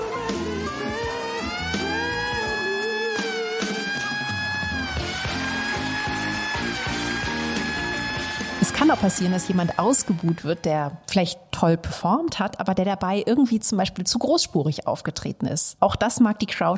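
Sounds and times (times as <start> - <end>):
siren drowning out a performer: 0.0 - 11.0
speech: 8.9 - 16.7.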